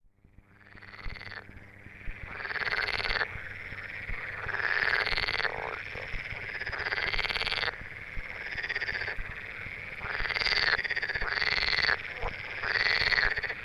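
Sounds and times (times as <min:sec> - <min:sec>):
edible frog giving rattling buzzy croaking bursts: 0:00.4 - 0:13.6.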